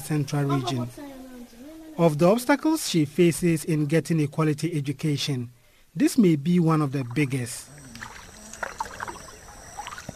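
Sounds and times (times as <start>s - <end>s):
speech: 0.1s - 1.0s, 2.0s - 7.7s
river water flowing: 6.9s - 10.1s.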